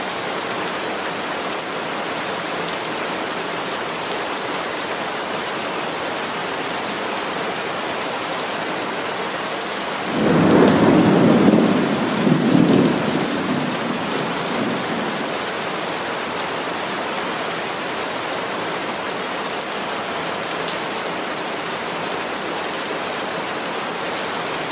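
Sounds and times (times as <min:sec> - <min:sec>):
steady rain: 0:00.0 - 0:24.7
thunder rumbling: 0:10.1 - 0:15.4.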